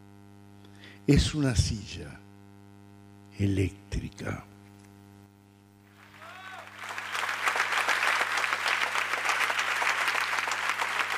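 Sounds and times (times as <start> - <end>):
speech: 1.0 - 2.2, 3.4 - 4.5
audience applause after a poetry reading: 5.9 - 11.1.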